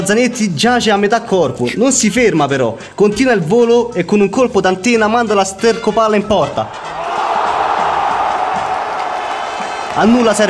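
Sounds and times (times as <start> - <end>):
speech: 0.0 - 7.0, 10.0 - 10.4
stadium crowd cheering after a goal: 6.8 - 10.4.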